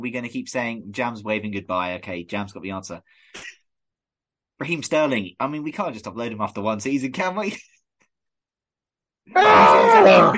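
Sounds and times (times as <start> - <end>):
speech: 0.0 - 3.6, 4.6 - 7.7, 9.3 - 10.3
man screaming: 9.4 - 10.3.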